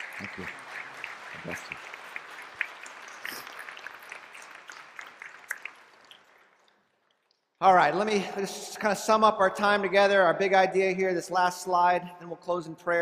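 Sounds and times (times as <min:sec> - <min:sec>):
audience applause: 0:00.0 - 0:06.7
speech: 0:00.2 - 0:00.6, 0:01.4 - 0:02.0, 0:07.6 - 0:13.0.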